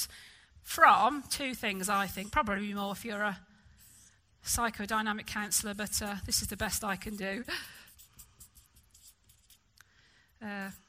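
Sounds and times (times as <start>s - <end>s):
speech: 0.0s - 3.5s, 4.4s - 7.8s, 10.4s - 10.8s
marker writing on a board by a lecturing teacher: 1.4s - 3.0s, 3.8s - 4.2s, 5.4s - 9.7s.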